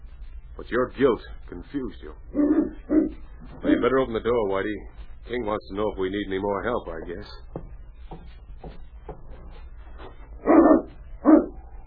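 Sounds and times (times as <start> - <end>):
low steady hum: 0.0 - 11.8
speech: 0.6 - 7.5
dog barking: 2.3 - 3.8, 10.4 - 11.8.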